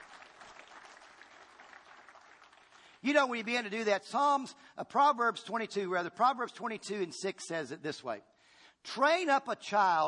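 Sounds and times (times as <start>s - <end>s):
congregation applauding as a clap offering at a church service: 0.0s - 3.8s
speech: 3.0s - 10.0s.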